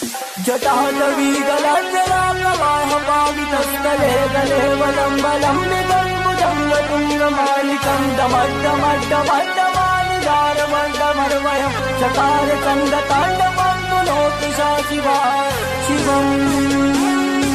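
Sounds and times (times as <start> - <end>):
Sanskrit devotional chant ringtone: 0.2 - 17.4.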